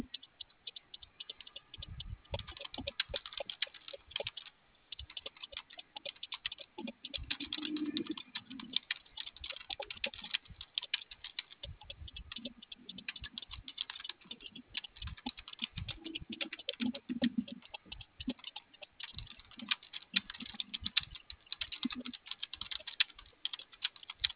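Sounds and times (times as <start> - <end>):
typing on a keyboard: 0.0 - 24.3.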